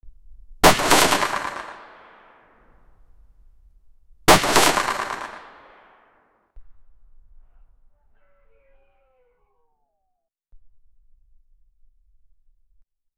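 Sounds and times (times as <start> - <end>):
artillery shot: 0.6 - 2.6, 4.3 - 6.1.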